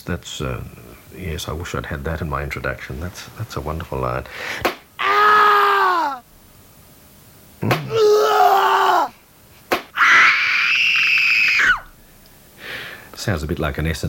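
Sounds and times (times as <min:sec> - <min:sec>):
speech: 0:00.0 - 0:04.8, 0:07.6 - 0:08.0, 0:13.3 - 0:14.0
person screaming: 0:05.0 - 0:06.2, 0:07.9 - 0:09.2, 0:10.0 - 0:11.9.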